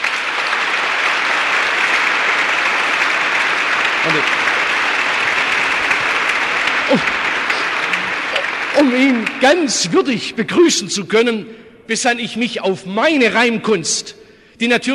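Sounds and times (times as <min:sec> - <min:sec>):
audience applause: 0:00.0 - 0:10.8
speech: 0:04.1 - 0:04.4, 0:06.9 - 0:07.2, 0:08.8 - 0:14.9.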